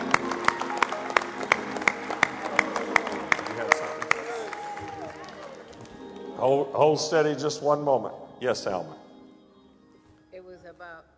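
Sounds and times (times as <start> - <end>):
audience clapping in praise: 0.0 - 6.4
speech: 6.4 - 9.0.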